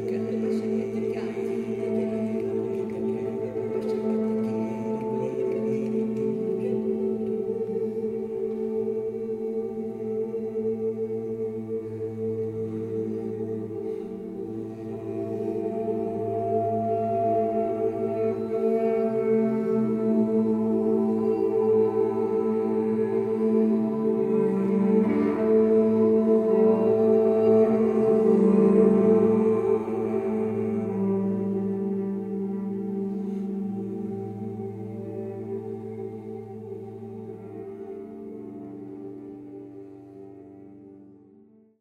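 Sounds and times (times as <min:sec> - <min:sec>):
soundpainting improvisation: 0:00.0 - 0:41.7.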